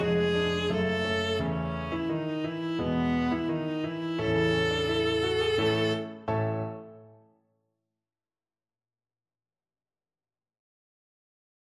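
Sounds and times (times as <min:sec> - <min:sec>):
viola melody: 0:00.0 - 0:07.2.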